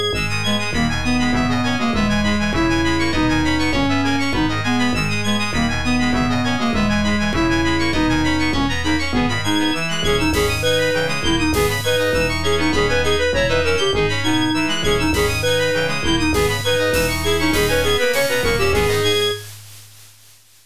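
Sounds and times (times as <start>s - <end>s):
OPL3 FM synthesizer music: 0.1s - 19.8s.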